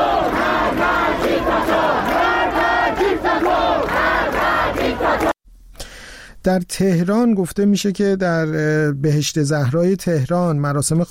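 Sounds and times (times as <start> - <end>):
students at a university sit-in protest chanting a slogan in unison: 0.0 - 5.4
speech: 6.4 - 11.0.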